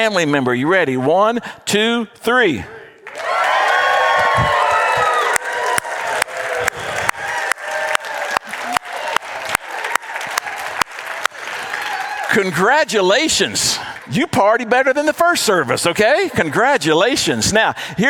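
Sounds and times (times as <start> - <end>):
speech: 0.0 - 2.8, 12.4 - 18.0
church congregation clapping in celebration: 3.0 - 14.3
church congregation shouting and whooping in celebration: 3.1 - 10.7.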